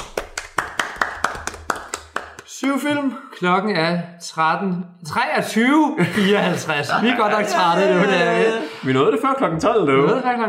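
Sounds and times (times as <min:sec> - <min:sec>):
small group clapping: 0:00.0 - 0:03.0
speech: 0:02.6 - 0:10.4
laughter: 0:06.0 - 0:08.9.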